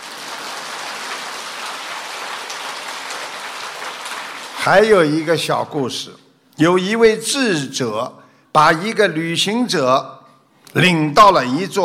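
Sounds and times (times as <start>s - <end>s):
audience applause: 0.0s - 5.1s
speech: 4.6s - 10.1s, 10.7s - 11.8s.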